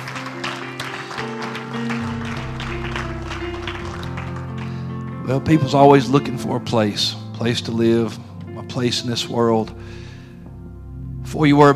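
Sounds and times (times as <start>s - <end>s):
audience hand clapping in praise: 0.0s - 5.8s
speech: 5.3s - 10.0s, 11.3s - 11.7s.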